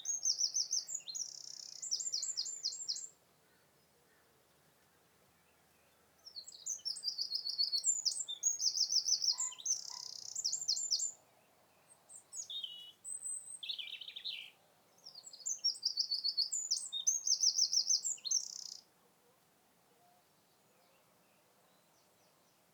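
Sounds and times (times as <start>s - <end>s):
Eurasian wren Troglodytes troglodytes singing: 0.0s - 3.2s, 5.8s - 11.2s, 11.8s - 18.9s.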